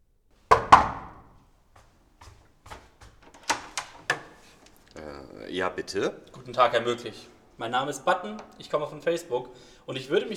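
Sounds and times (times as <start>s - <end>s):
knocking on a door: 0.5s - 1.3s
speech: 5.5s - 10.3s.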